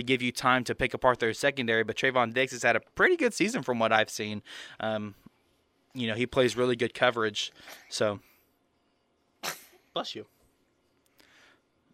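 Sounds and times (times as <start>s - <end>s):
speech: 0.0s - 5.3s, 6.0s - 8.3s, 9.4s - 10.4s
sneeze: 7.6s - 8.0s, 9.4s - 9.9s.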